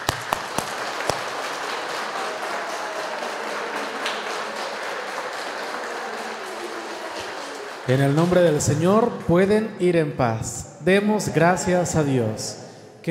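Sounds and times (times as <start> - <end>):
audience applauding: 0.0 - 8.8
speech: 7.9 - 13.1.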